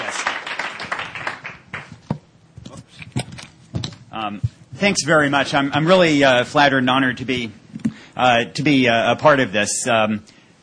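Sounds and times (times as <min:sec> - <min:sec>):
audience applause: 0:00.0 - 0:02.0
speech: 0:04.2 - 0:07.6, 0:08.2 - 0:10.3.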